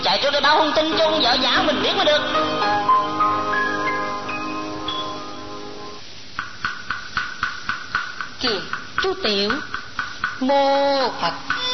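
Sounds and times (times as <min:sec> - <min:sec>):
speech: 0:00.1 - 0:02.8, 0:08.4 - 0:09.8, 0:10.4 - 0:11.6
temple bell ringing: 0:01.0 - 0:06.0
wooden fish rhythmic knocking: 0:06.4 - 0:10.5.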